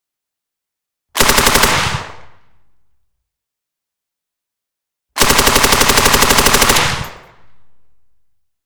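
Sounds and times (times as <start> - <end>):
Heckler & Koch MG4 5.56mm machine gun firing clean bursts: 1.2 - 2.1, 5.2 - 7.4.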